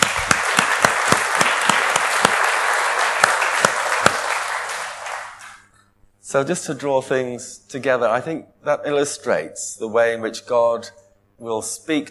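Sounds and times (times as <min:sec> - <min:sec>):
audience applause: 0:00.0 - 0:05.6
speech: 0:06.3 - 0:12.0.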